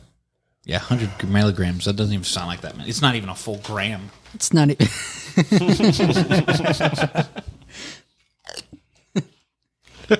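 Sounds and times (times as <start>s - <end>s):
speech: 0.6s - 8.0s
laughter: 4.8s - 7.7s, 9.1s - 10.1s
chewing crispy chunky chips: 8.2s - 9.2s.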